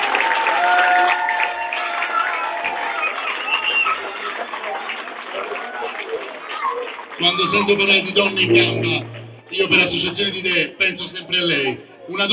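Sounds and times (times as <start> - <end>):
audience applause in a town square: 0.0 - 7.6
speech: 7.2 - 12.3.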